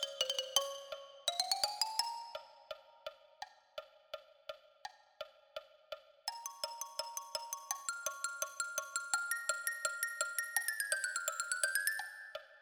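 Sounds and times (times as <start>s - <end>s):
xylophone: 0.0s - 2.9s, 6.3s - 12.3s.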